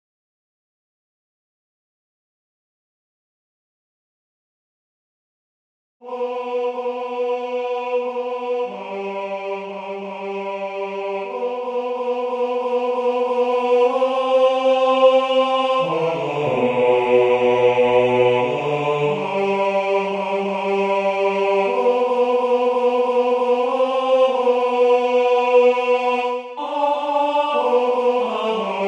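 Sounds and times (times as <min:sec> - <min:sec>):
tenor singing: 0:06.1 - 0:28.8.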